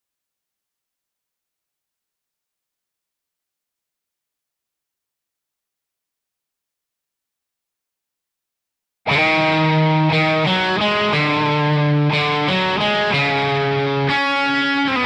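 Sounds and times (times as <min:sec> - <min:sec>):
bass guitar: 0:09.1 - 0:15.0.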